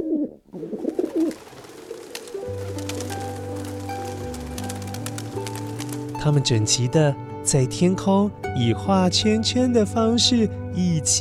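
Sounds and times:
pigeons cooing: 0.0 - 6.2
speech: 6.2 - 11.1.

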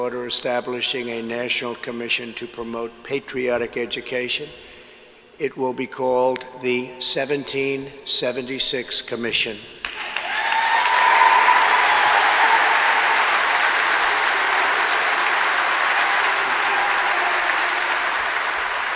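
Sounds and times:
speech: 0.0 - 4.7, 5.4 - 9.8
large crowd applauding: 9.8 - 18.9.

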